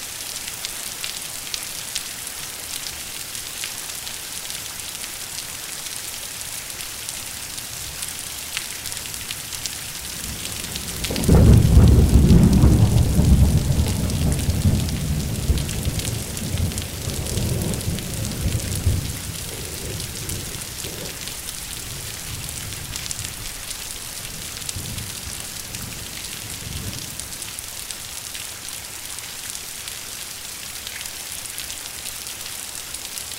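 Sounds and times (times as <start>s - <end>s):
thunderstorm rain: 9.1s - 28.2s.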